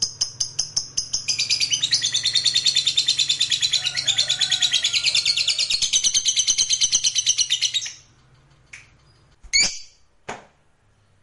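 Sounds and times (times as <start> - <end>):
lovebird trilling: 0.0 - 8.1, 9.5 - 10.0.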